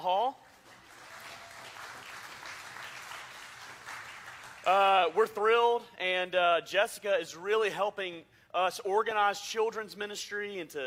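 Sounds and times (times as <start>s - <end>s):
speech: 0.0s - 0.5s, 4.6s - 10.8s
audience applause: 0.5s - 5.2s.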